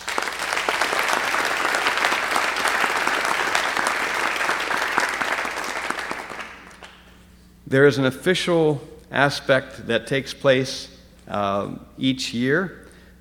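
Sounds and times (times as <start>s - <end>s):
audience applause: 0.0s - 7.0s
speech: 7.7s - 12.8s.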